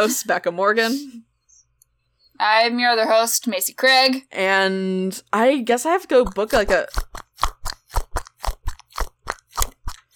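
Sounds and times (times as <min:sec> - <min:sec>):
speech: 0:00.0 - 0:01.3, 0:02.4 - 0:07.2
crunchy cat-shaped stress ball being squeezed: 0:06.2 - 0:10.1.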